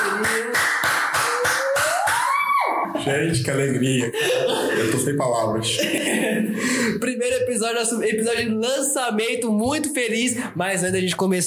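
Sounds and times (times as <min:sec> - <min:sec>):
rhythmic hand clapping: 0:00.0 - 0:02.4
laughter: 0:02.8 - 0:06.8
speech: 0:03.1 - 0:11.4.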